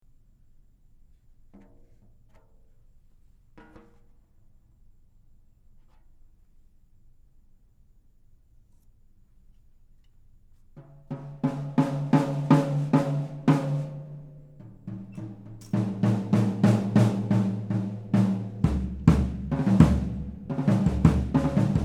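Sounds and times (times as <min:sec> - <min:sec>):
Ludwig Clubdate black lacquer drum kit: 0:10.7 - 0:21.8.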